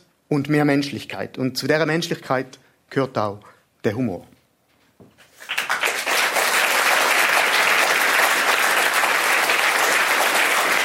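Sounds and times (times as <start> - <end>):
speech: 0.3 - 4.3
audience applause: 5.4 - 10.8.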